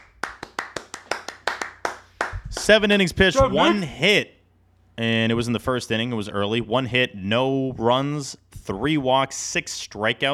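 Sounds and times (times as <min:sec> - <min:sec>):
person clapping hands: 0:00.0 - 0:02.8
speech: 0:02.7 - 0:04.4, 0:05.0 - 0:10.3.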